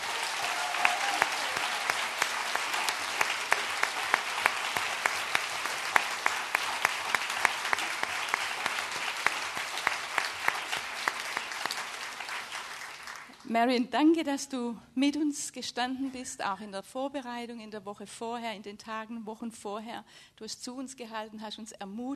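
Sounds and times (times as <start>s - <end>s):
audience applause: 0.0s - 13.4s
speech: 13.5s - 22.1s.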